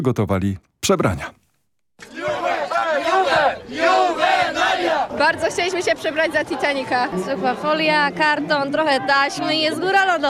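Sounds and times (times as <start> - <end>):
speech: 0.0 - 1.4, 5.2 - 10.2
students' crowd shouting and cheering at city square festival: 2.0 - 10.2.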